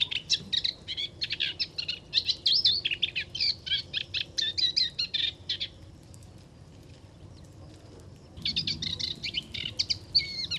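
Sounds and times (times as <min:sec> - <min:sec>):
moustached warbler singing: 0:00.0 - 0:05.8, 0:08.4 - 0:10.5.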